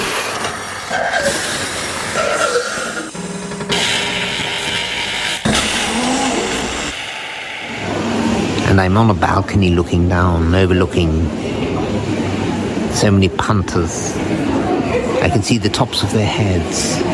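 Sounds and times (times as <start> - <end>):
coffee machine running: 0.0 - 8.8
speech: 8.8 - 12.2, 13.0 - 14.4, 15.2 - 17.1.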